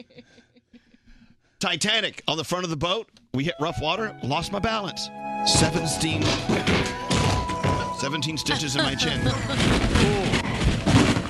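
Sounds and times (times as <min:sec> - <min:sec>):
laughter: 0:00.0 - 0:01.0, 0:06.8 - 0:10.4
speech: 0:01.6 - 0:06.8, 0:08.0 - 0:10.6
flutes: 0:03.4 - 0:09.7
body falling downstairs sound effect: 0:06.1 - 0:08.0, 0:08.7 - 0:11.2.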